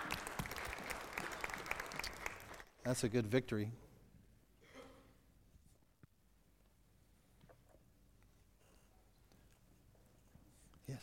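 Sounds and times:
audience applause: 0.0s - 2.8s
speech: 2.8s - 3.8s.

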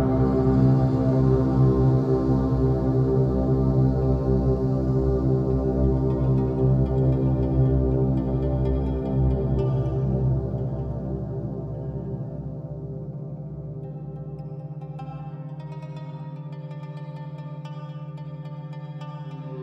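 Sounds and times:
binaural beats droning tones for headache relief: 0.0s - 7.3s
low pulsing hum: 0.0s - 13.4s.

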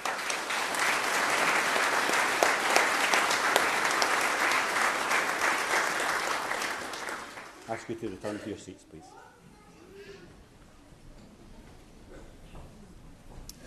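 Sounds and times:
audience applause: 0.0s - 8.0s
speech: 7.8s - 9.3s.

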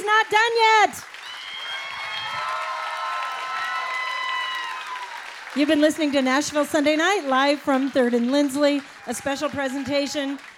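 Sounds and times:
audience applause: 1.0s - 10.5s
speech: 5.6s - 10.5s.

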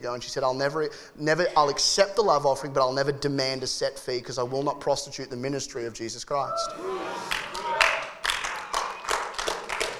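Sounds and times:
speech: 0.0s - 7.3s
audience clapping: 7.1s - 9.9s.

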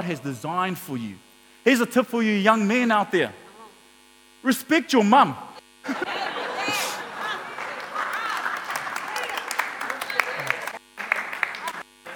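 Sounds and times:
speech: 0.1s - 3.4s, 4.4s - 6.8s
people laughing: 5.8s - 11.8s
crowd clapping: 6.5s - 12.1s.

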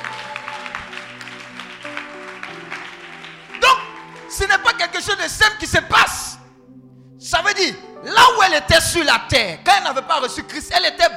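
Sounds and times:
churchgoers clapping in praise to God during a French sermon: 0.0s - 5.6s
speech: 4.4s - 6.3s, 7.6s - 11.1s.

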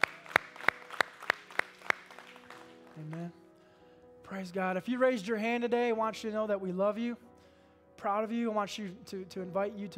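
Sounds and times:
audience clapping in unison: 0.0s - 3.4s
speech: 4.3s - 7.3s, 8.0s - 9.9s.

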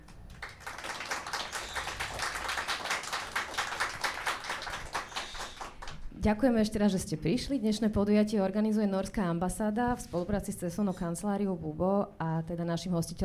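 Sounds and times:
audience applause: 0.0s - 6.0s
speech: 6.2s - 13.2s.

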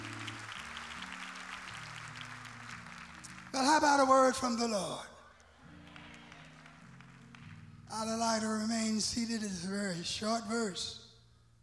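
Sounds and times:
audience applause: 0.0s - 4.5s, 5.7s - 7.6s
speech: 3.8s - 5.1s, 8.0s - 11.0s.

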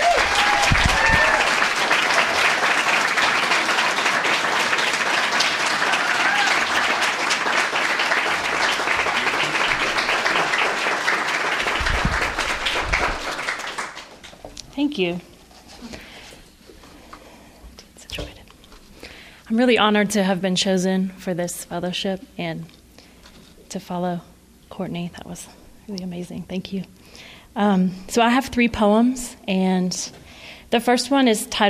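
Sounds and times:
audience applause: 0.0s - 14.4s
speech: 15.0s - 15.3s, 19.6s - 22.8s, 23.7s - 31.6s.

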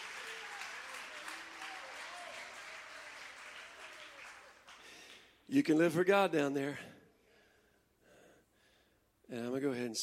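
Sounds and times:
audience clapping hands: 0.0s - 5.5s
speech: 5.5s - 6.9s, 9.3s - 10.0s.

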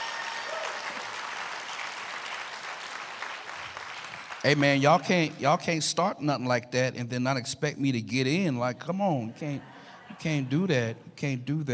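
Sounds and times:
audience clapping hands: 0.0s - 5.4s
speech: 4.4s - 11.7s
laughter: 8.6s - 11.4s.

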